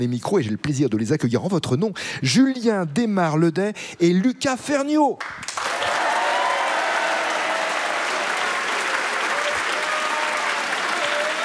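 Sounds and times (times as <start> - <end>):
speech: 0.0 - 5.6
large audience applause greeting two young participants: 5.4 - 11.4.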